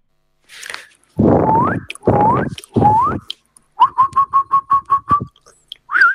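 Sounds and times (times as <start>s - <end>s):
person imitating a jackdaw call: 1.2s - 6.0s.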